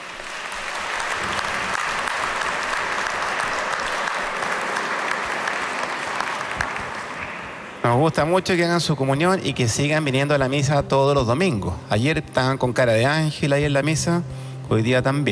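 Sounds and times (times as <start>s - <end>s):
applause: 0.0s - 7.8s
speech: 7.9s - 15.3s.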